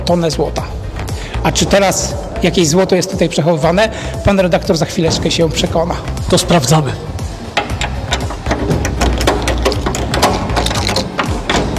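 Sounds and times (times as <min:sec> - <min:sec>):
low grinding rumble: 0:00.0 - 0:11.7
speech: 0:00.1 - 0:00.8, 0:01.4 - 0:07.2
heavy vault door locking bar clicks and ratcheting: 0:07.4 - 0:11.7.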